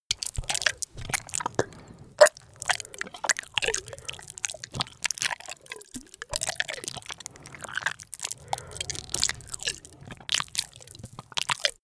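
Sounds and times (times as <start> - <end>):
monster eating flesh: 0.1 - 11.8.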